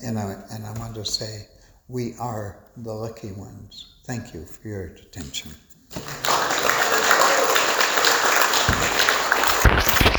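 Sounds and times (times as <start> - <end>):
speech: 0.0 - 6.2
crowd applauding: 5.9 - 10.1.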